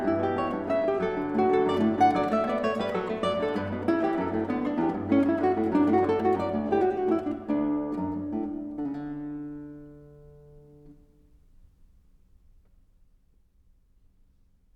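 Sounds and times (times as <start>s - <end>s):
bourree: 0.0s - 9.5s.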